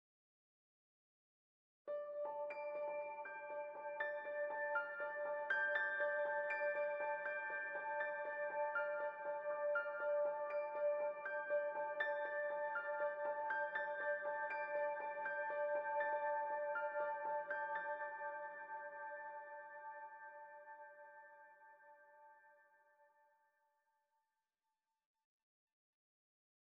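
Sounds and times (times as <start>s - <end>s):
piano: 1.9s - 22.6s.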